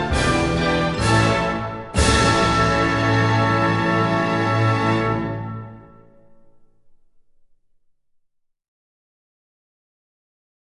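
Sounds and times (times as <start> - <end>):
instrumental national anthem: 0.0 - 6.8.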